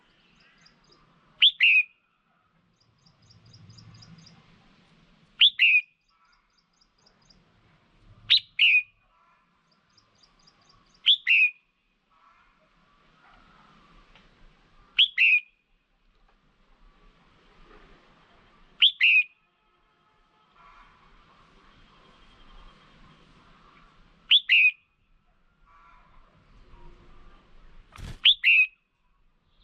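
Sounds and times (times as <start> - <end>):
red-whiskered bulbul whistled calls: 0.4 - 2.0, 5.4 - 7.4, 8.3 - 9.0, 9.9 - 11.6, 15.0 - 15.5, 18.8 - 19.3, 24.3 - 24.8, 28.0 - 28.8.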